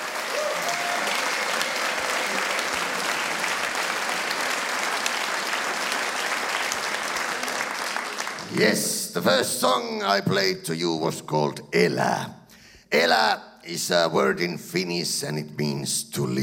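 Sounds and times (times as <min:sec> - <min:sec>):
audience applause: 0:00.0 - 0:09.1
speech: 0:08.6 - 0:16.4.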